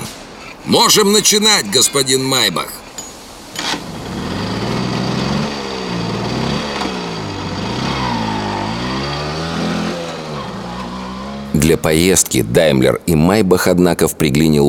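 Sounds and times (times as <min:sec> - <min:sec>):
speech: 0:00.6 - 0:02.8, 0:11.7 - 0:14.6
early motor carriage engine running, 1.5 horsepower at 600 rpm: 0:03.6 - 0:11.8.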